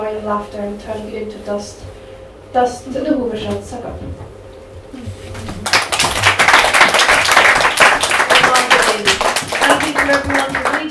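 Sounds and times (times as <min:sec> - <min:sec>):
speech: 0:00.1 - 0:05.2, 0:10.1 - 0:10.9
audience applause after a reading: 0:05.6 - 0:10.9.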